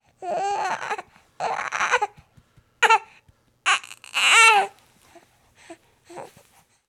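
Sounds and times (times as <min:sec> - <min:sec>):
baby crying: 0:00.2 - 0:02.2, 0:02.8 - 0:03.1, 0:03.7 - 0:04.8.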